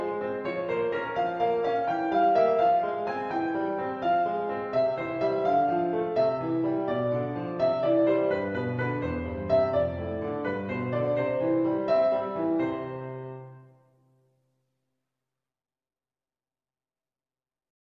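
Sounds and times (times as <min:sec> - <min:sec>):
sonatina in F minor: 0:00.0 - 0:13.9.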